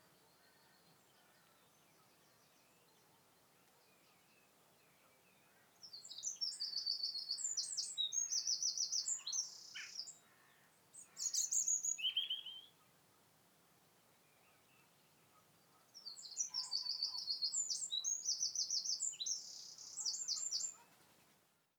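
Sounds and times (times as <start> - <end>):
Eurasian wren Troglodytes troglodytes singing: 5.8 - 10.2, 11.0 - 12.8, 16.0 - 20.8.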